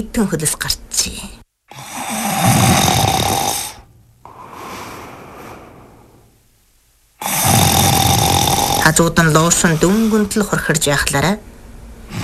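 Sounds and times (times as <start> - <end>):
speech: 0.0 - 1.4, 8.9 - 11.5
loud snoring: 1.7 - 6.4, 7.2 - 10.2, 12.1 - 12.2.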